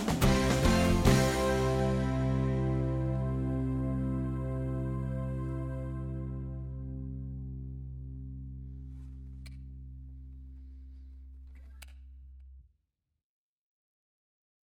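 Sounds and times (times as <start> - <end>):
violin playing: 0.4 - 7.2.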